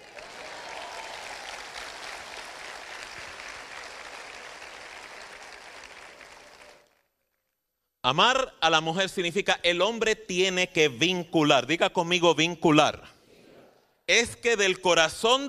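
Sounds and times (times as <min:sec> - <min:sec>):
sustained audience applause: 0:00.0 - 0:07.1
speech: 0:08.1 - 0:13.2, 0:14.1 - 0:15.4.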